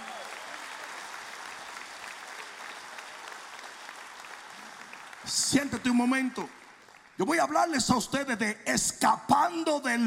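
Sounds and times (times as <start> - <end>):
audience applauding: 0.0 - 7.7
speech: 5.3 - 6.6, 7.2 - 10.0.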